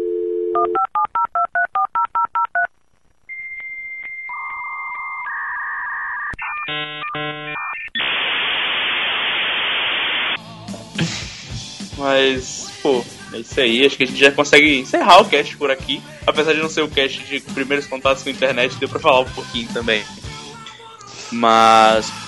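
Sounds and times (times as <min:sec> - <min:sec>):
dial-up modem connecting to the internet over a telephone line: 0:00.3 - 0:10.4
speech: 0:00.6 - 0:01.3, 0:12.0 - 0:20.2, 0:21.3 - 0:22.2.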